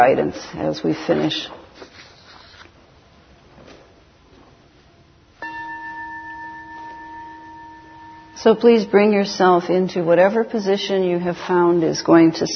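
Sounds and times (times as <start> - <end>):
speech: 0.0 - 1.6, 8.4 - 12.5
meditation bell ringing: 5.4 - 10.4.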